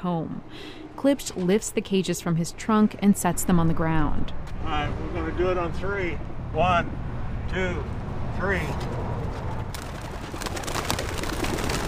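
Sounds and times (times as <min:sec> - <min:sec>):
speech: 0:00.0 - 0:09.1
homing pigeons flapping wings taking off: 0:09.3 - 0:11.8.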